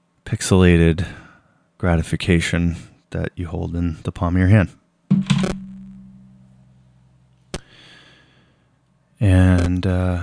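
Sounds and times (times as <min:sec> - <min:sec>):
speech: 0:00.3 - 0:01.2, 0:01.8 - 0:05.5, 0:09.2 - 0:10.2
phone thrown and hitting a surface: 0:05.1 - 0:06.3
sharp knock: 0:05.1 - 0:06.4
low lingering hum: 0:05.5 - 0:06.9.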